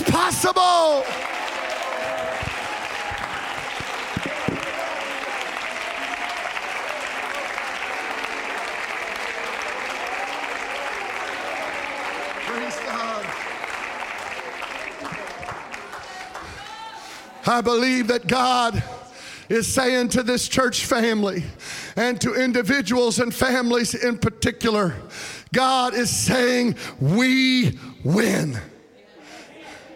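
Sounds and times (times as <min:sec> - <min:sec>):
faint cheering: 0:00.0 - 0:17.2
audience clapping: 0:00.0 - 0:17.3
speech: 0:17.5 - 0:18.9, 0:19.5 - 0:28.7.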